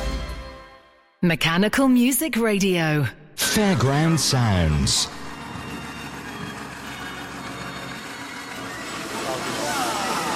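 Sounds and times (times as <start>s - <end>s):
speech: 1.2s - 5.2s
John Deere tractor driving past: 3.4s - 10.3s.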